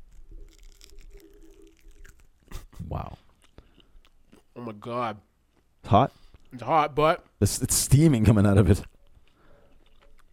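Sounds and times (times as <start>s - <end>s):
crunchy biting into a hot chicken wing: 0.0s - 4.5s, 8.8s - 10.3s
speech: 2.9s - 3.2s, 4.6s - 5.3s, 5.9s - 8.9s.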